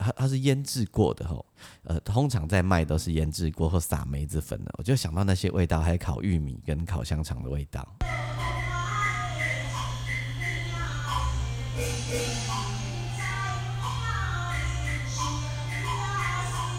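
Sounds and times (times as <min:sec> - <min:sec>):
speech: 0:00.2 - 0:08.2, 0:11.8 - 0:12.6
steady low hum: 0:07.9 - 0:16.7
distant Taiwanese opera at temple square heard from inside a house: 0:08.0 - 0:16.7.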